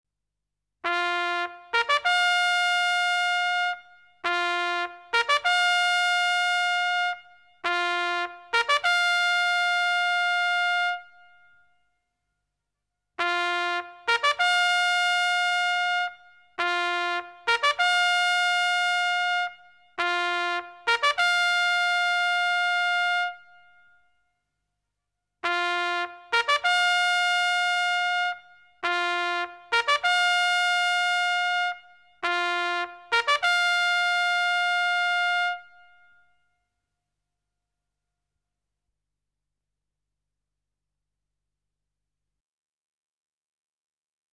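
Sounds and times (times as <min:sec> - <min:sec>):
military trumpet call: 0:00.8 - 0:11.2, 0:13.2 - 0:23.6, 0:25.4 - 0:36.0.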